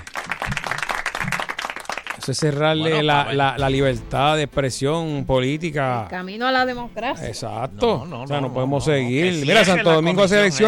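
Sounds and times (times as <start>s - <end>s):
applause: 0.0s - 2.9s
speech: 2.3s - 10.6s.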